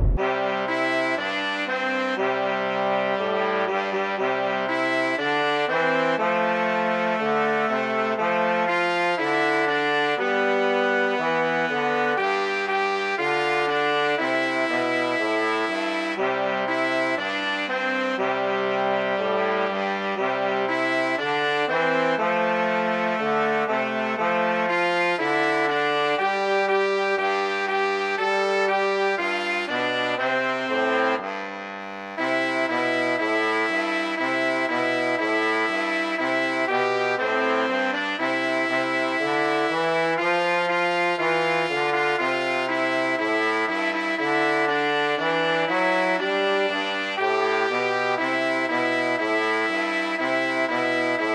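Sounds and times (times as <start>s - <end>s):
Christmas song: 0.2s - 51.3s.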